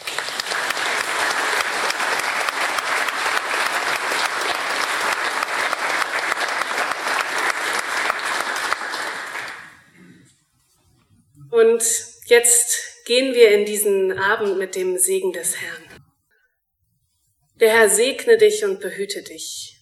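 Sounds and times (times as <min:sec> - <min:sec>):
audience applauding in church: 0:00.0 - 0:09.9
speech: 0:11.8 - 0:16.0, 0:17.6 - 0:19.7.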